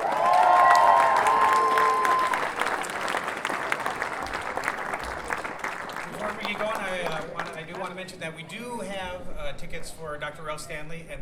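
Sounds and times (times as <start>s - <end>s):
high whistle or cheer: 0.0s - 2.7s
audience applause: 0.0s - 8.0s
speech: 8.0s - 11.2s.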